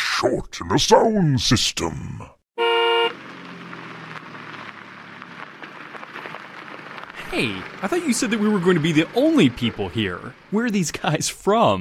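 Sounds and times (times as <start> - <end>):
speech: 0.2 - 2.4, 7.3 - 11.7
Model T car horn honking: 2.6 - 3.2
rumbling crackling noise: 3.2 - 11.3.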